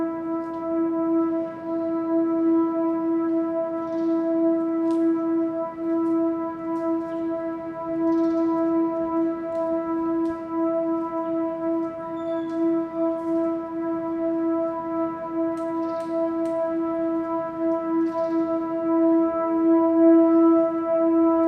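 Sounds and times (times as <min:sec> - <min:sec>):
alarm sirens: 0:00.0 - 0:21.4.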